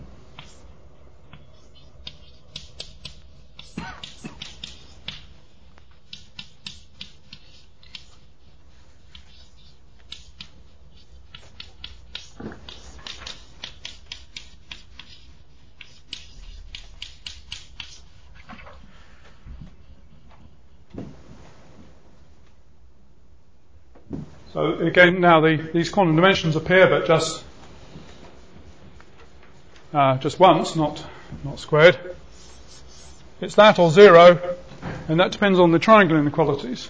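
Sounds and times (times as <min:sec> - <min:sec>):
hiss: 0:00.0 - 0:36.8
handwriting a mathematical formula: 0:00.3 - 0:18.8, 0:32.2 - 0:33.3
speech: 0:24.6 - 0:27.4, 0:30.0 - 0:32.1, 0:33.4 - 0:34.5, 0:35.1 - 0:36.8.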